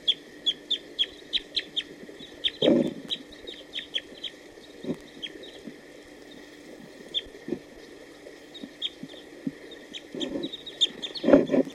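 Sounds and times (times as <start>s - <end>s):
wild male bird song phrases: 0.0s - 5.6s, 8.5s - 11.3s.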